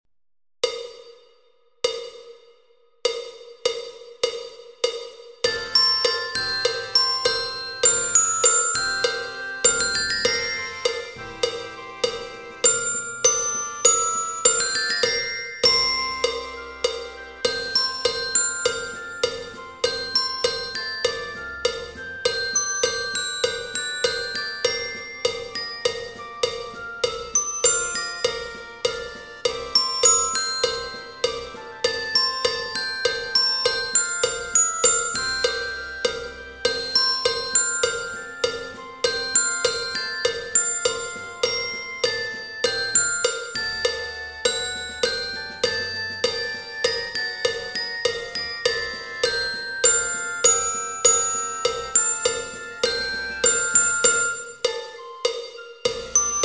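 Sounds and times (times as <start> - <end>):
glockenspiel: 3.1 - 56.4.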